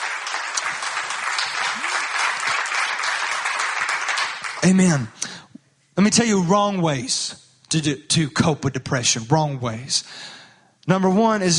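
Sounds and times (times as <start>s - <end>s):
crowd clapping hands: 0.0s - 5.2s
speech: 4.6s - 5.2s, 6.0s - 11.5s.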